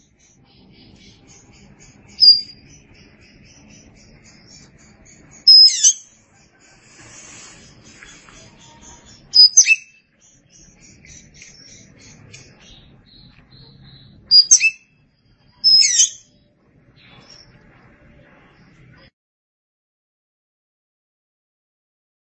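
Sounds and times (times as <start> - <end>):
Oriental magpie-robin uttering high piercing notes: 0.0 - 6.2, 8.7 - 14.9, 15.5 - 16.4
faint twitters: 0.0 - 19.1.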